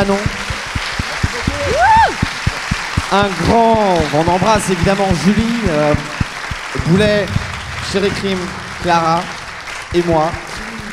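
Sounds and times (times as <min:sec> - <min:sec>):
speech: 0:00.0 - 0:00.4, 0:03.1 - 0:06.1, 0:06.8 - 0:10.5
rhythmic audience applause: 0:00.0 - 0:10.9
rising-and-falling whoop or whistle: 0:01.5 - 0:02.3.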